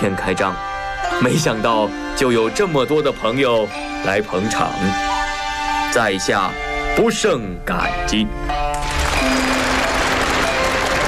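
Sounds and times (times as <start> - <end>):
speech: 0.0 - 5.1, 5.9 - 9.4
audience applause: 8.8 - 11.0.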